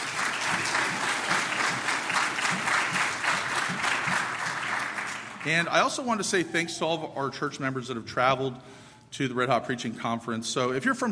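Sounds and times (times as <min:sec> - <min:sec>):
audience applause: 0:00.0 - 0:05.8
speech: 0:05.4 - 0:11.0.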